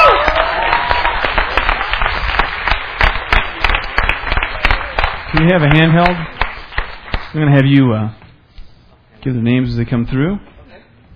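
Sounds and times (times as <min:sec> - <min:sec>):
audience applauding graduates: 0:00.0 - 0:07.4
speech: 0:05.4 - 0:06.3, 0:07.3 - 0:08.2, 0:09.2 - 0:10.5.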